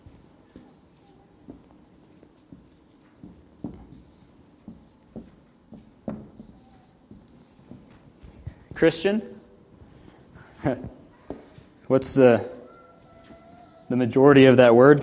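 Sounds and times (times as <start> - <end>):
handwriting with a pen: 0.5 - 7.9
speech: 8.8 - 9.4, 11.9 - 12.6, 14.0 - 15.0.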